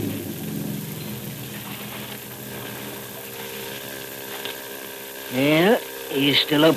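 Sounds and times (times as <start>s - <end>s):
motorboat engine droning: 0.0s - 6.7s
soft wash of water: 0.0s - 6.7s
speech: 5.3s - 6.7s.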